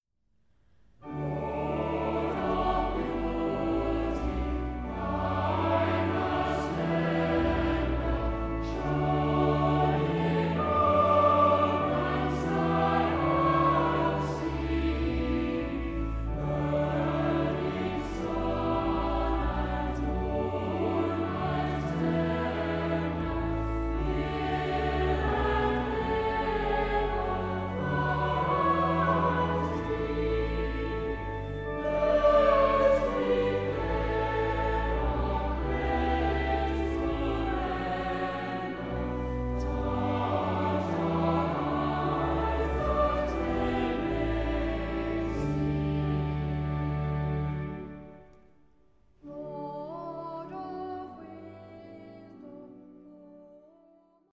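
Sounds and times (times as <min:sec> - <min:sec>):
church choir singing: 0:01.0 - 0:48.5, 0:49.2 - 0:53.4.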